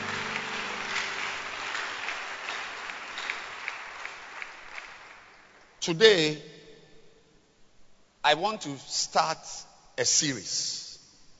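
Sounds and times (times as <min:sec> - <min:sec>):
audience clapping: 0:00.0 - 0:05.6
speech: 0:05.8 - 0:06.5, 0:08.2 - 0:10.9.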